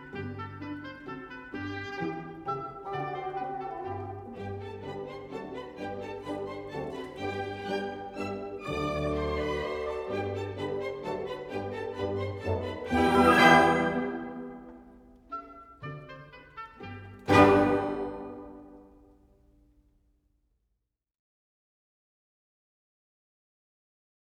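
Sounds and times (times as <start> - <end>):
fantastic ballet music allegretto delicato: 0.0 - 19.1.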